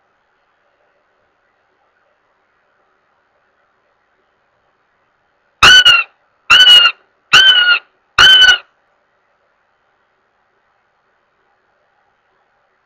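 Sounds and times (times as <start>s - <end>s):
Northern goshawk wailing with loud drawn-out nasal squeals: 5.6s - 8.6s.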